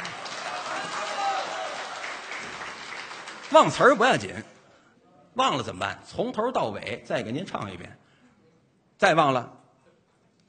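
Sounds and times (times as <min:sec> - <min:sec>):
audience applause: 0:00.0 - 0:04.4
speech: 0:03.5 - 0:04.6, 0:05.4 - 0:08.0, 0:09.0 - 0:09.6.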